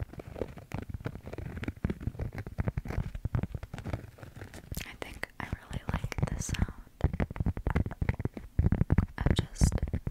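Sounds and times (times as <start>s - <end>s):
ASMR tapping on wooden and cork triggers: 0.4s - 10.0s.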